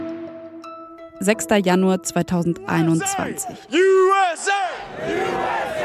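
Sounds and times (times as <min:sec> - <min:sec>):
speech: 0:01.2 - 0:05.8
person shouting: 0:02.6 - 0:04.8
crowd yelling during Capitol storming: 0:02.8 - 0:05.8.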